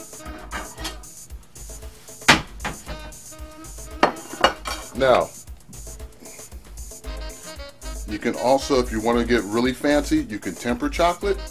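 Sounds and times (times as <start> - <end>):
plate crockery clinking and knocking in a kitchen: 0.4 - 1.1, 2.2 - 3.1, 3.9 - 5.3
speech: 5.0 - 5.4, 8.1 - 11.4.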